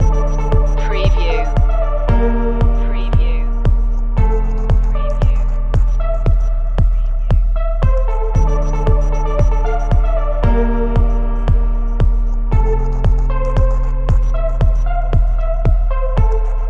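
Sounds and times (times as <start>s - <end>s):
corporate awareness music loop: 0.0s - 16.6s.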